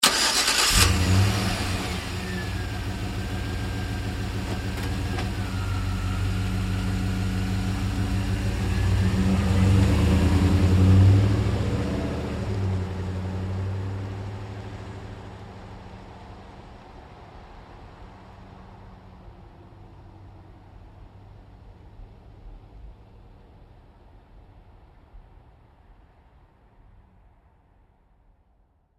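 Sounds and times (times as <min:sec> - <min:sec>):
GMC Savana truck starting: 0:00.0 - 0:14.6
GMC Savana truck driving away slowly: 0:00.6 - 0:22.1.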